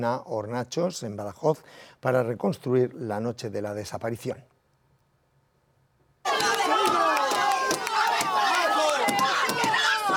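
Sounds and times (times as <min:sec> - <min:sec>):
speech: 0:00.0 - 0:04.5
neighbours shouting at arrested suspects: 0:06.3 - 0:10.1.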